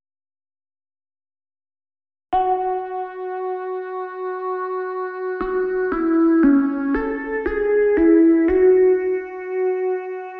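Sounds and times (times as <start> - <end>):
synth: 2.4 - 10.3.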